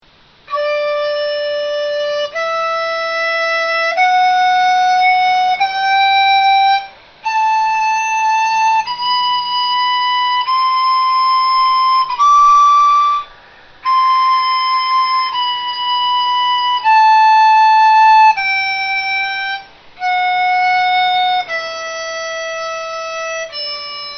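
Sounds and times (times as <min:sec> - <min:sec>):
dizi bamboo flute: 0:00.1 - 0:24.1.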